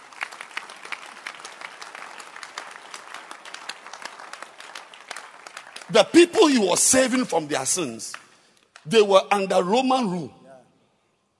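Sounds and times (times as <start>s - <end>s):
audience clapping hands: 0.0s - 9.1s
speech: 5.9s - 8.2s, 8.9s - 10.4s.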